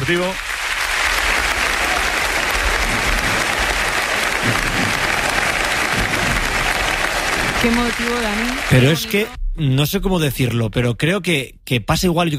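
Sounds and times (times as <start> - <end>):
stadium crowd applause in Gijón: 0.0 - 9.4
speech: 0.1 - 0.5, 7.6 - 12.3.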